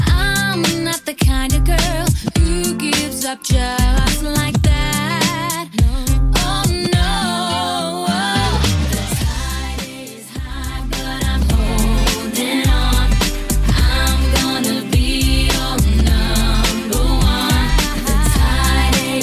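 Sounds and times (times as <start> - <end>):
clean drum beat: 0.0 - 7.2, 8.5 - 19.2.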